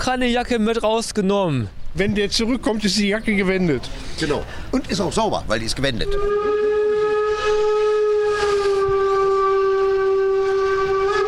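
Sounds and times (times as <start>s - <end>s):
speech: 0.0s - 6.7s
locomotive horn blaring: 6.0s - 11.2s.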